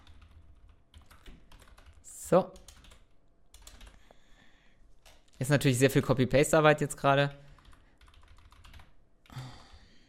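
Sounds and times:
typing on a computer keyboard: 0:00.0 - 0:04.0, 0:05.0 - 0:05.4, 0:07.3 - 0:09.4
speech: 0:02.3 - 0:02.6, 0:05.4 - 0:07.4.

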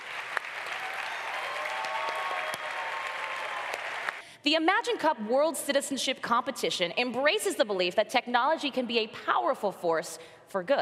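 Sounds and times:
audience applause: 0:00.0 - 0:04.2
speech: 0:04.4 - 0:10.8.

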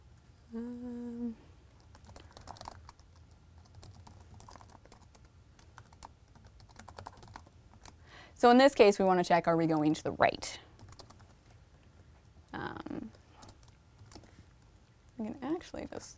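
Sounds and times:
steady low buzzy tone: 0:00.0 - 0:01.6
typing on a computer keyboard: 0:01.8 - 0:08.0, 0:10.8 - 0:11.6, 0:13.0 - 0:14.3
speech: 0:08.4 - 0:10.7, 0:16.0 - 0:16.1.

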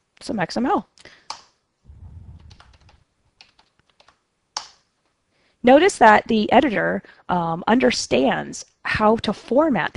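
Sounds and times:
speech: 0:00.2 - 0:01.2, 0:05.6 - 0:09.9
low thumping rumble: 0:01.9 - 0:03.0
typing on computer keyboard: 0:02.4 - 0:04.8.

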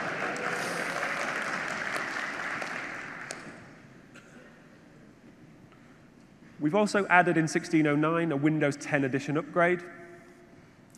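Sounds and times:
applause: 0:00.0 - 0:03.8
speech: 0:06.6 - 0:10.0.

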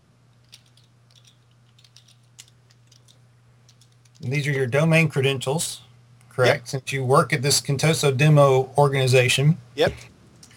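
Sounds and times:
computer keyboard typing a username and password: 0:00.5 - 0:04.3
speech: 0:04.2 - 0:10.1.

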